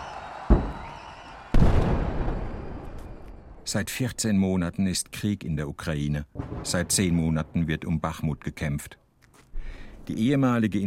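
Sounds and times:
applause from rally crowd: 0.0s - 1.6s
speech: 3.7s - 9.0s, 10.1s - 10.8s.

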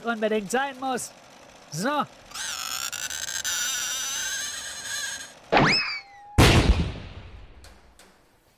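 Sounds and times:
speech: 0.0s - 2.5s
singing saw bowed with a violin bow: 2.3s - 5.4s.

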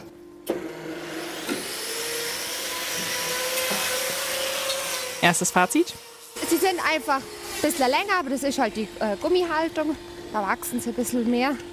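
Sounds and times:
angle grinder trimming cow claw: 0.5s - 8.3s
speech: 5.2s - 11.7s.

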